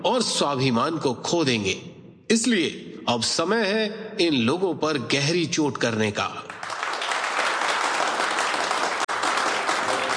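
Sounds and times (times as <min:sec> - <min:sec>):
speech: 0:00.0 - 0:06.5
audience applause after a speech: 0:06.5 - 0:10.1.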